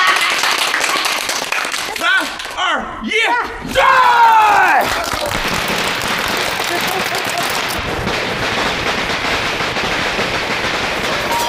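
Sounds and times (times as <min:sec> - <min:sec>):
laughter: 0:00.0 - 0:02.5, 0:04.8 - 0:07.8
people clapping: 0:00.0 - 0:02.7, 0:04.4 - 0:11.4.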